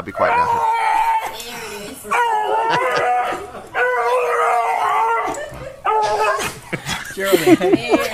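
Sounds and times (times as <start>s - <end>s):
dog, possibly a pug, howling and barking in a waiting room: 0.1s - 6.6s
laughter: 2.5s - 4.4s, 5.4s - 8.1s.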